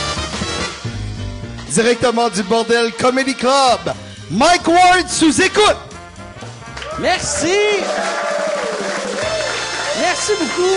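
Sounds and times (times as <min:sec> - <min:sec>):
speech: 0:01.8 - 0:05.9, 0:07.0 - 0:08.2, 0:10.0 - 0:10.7
comedy club audience applauding: 0:06.7 - 0:10.7.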